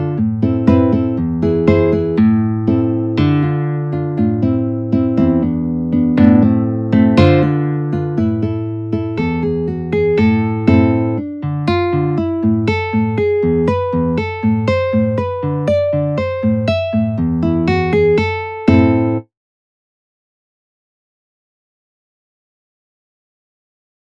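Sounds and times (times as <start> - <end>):
Hungarian gypsy guitar: 0.0 - 19.3.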